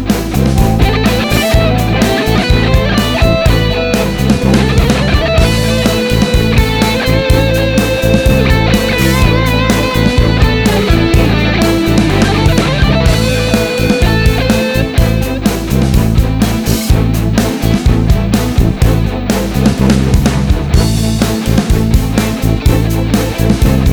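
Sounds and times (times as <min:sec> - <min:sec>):
practice melody: 0:00.0 - 0:23.9.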